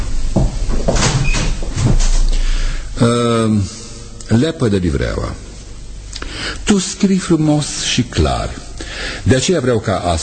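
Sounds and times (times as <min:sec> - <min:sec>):
door closing: 0:00.0 - 0:02.4
speech: 0:03.0 - 0:05.5, 0:06.7 - 0:10.2.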